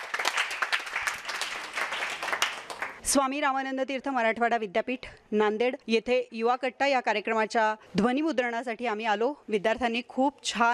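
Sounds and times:
audience clapping for a student at a youth talk event: 0.0s - 3.0s
speech: 3.1s - 10.7s.

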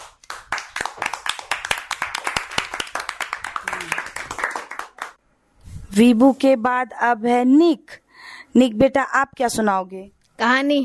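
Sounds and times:
children clapping: 0.0s - 5.2s
speech: 6.0s - 10.8s.

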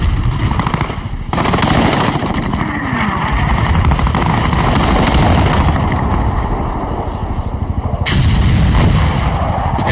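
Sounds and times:
aircraft engine roaring: 0.0s - 9.9s
aerial gunfire bursts: 0.3s - 6.2s.

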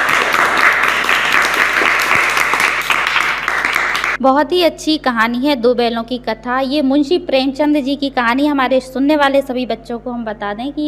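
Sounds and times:
villagers clapping: 0.0s - 4.2s
speech: 4.2s - 10.8s.

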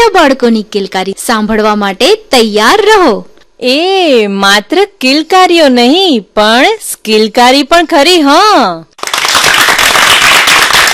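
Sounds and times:
speech: 0.0s - 9.0s
audience applause at a children's performance event: 9.0s - 10.9s.

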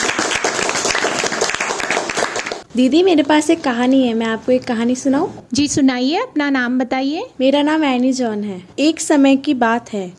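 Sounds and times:
audience applause for a child: 0.0s - 2.6s
speech: 2.8s - 10.1s.

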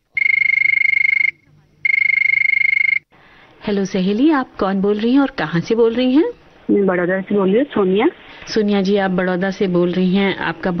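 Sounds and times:
electronic telephone ringing: 0.1s - 3.0s
speech: 3.6s - 10.7s.

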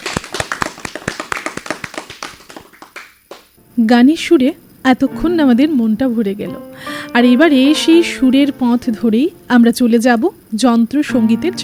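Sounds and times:
audience clapping for a child performer at a children's music gathering: 0.0s - 3.6s
speech: 3.8s - 11.6s.

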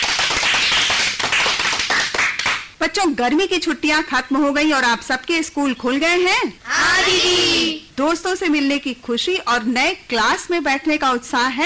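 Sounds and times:
children clapping hard: 0.0s - 2.7s
speech: 2.8s - 11.6s.

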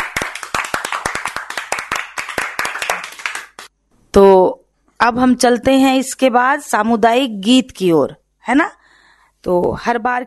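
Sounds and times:
group clapping for each other: 0.0s - 3.8s
speech: 4.2s - 8.8s, 9.4s - 10.2s.

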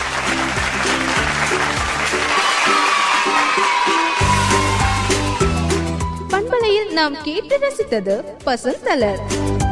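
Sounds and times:
applause for the children: 0.0s - 6.2s
speech: 7.0s - 9.6s.

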